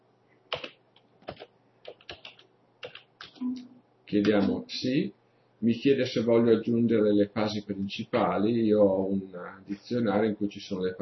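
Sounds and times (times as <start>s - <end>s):
keystrokes on a computer keyboard typing a file number: 0.5s - 3.4s
speech: 3.4s - 11.0s.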